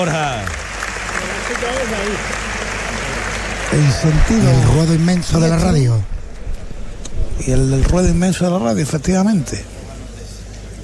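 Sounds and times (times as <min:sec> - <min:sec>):
speech: 0:00.0 - 0:00.6, 0:01.3 - 0:02.5, 0:03.7 - 0:06.2, 0:07.4 - 0:09.7
bullring crowd ovation with applause and cheering: 0:00.0 - 0:07.6.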